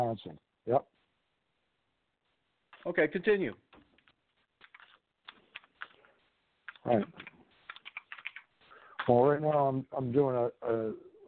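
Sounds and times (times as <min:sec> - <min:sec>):
speech: 0:00.1 - 0:01.0, 0:02.8 - 0:03.6, 0:06.8 - 0:07.3, 0:09.0 - 0:11.1
typing on a computer keyboard: 0:03.9 - 0:06.0, 0:06.7 - 0:08.5.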